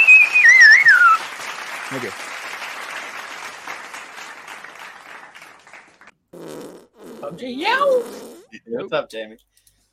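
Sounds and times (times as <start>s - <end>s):
loud whistle: 0.0s - 1.3s
speech: 1.9s - 2.3s, 7.3s - 9.5s.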